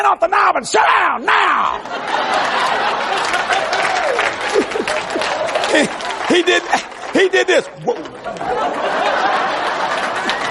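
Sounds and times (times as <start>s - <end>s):
speech: 0.0s - 9.3s
laughter: 1.7s - 10.4s
audience applause: 1.8s - 10.4s.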